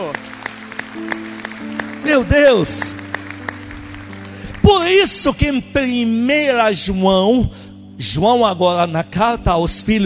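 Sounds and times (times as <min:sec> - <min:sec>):
audience applause: 0:00.0 - 0:05.5
speech: 0:02.0 - 0:03.0, 0:04.7 - 0:10.0.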